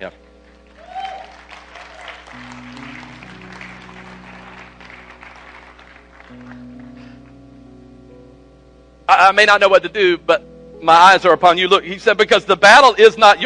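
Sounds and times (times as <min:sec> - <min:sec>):
speech: 0:00.0 - 0:00.2, 0:09.2 - 0:13.4
low organ-like chords: 0:00.0 - 0:13.4
audience applause: 0:00.6 - 0:07.2.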